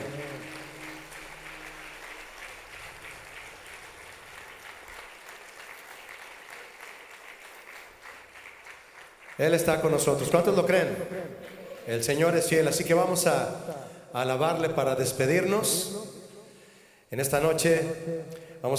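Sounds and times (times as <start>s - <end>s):
audience applause: 0.0s - 10.6s, 11.3s - 12.1s
speech: 9.4s - 16.0s, 17.1s - 18.7s.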